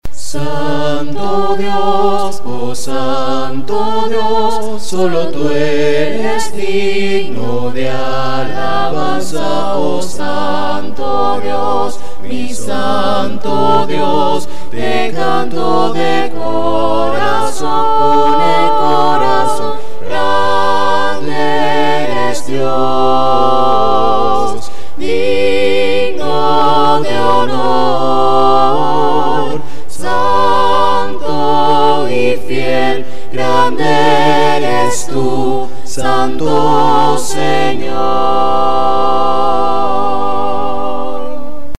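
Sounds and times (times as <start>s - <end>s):
hymns sung a cappella: 0.0s - 41.7s.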